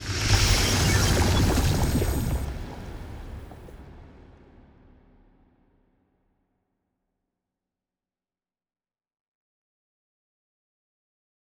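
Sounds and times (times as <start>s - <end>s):
ship moving: 0.2s - 3.8s.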